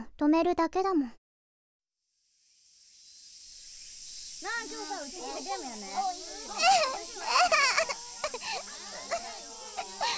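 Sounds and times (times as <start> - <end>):
speech: 0.2 - 1.2, 4.4 - 7.9
laughter: 4.7 - 10.1
child sobbing and whimpering: 5.9 - 10.1.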